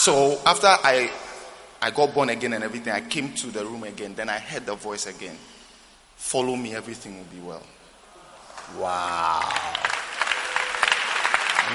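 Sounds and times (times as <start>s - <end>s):
speech: 0.0s - 1.2s, 1.8s - 5.6s, 6.2s - 7.8s, 8.7s - 9.9s
audience clapping: 8.5s - 11.7s.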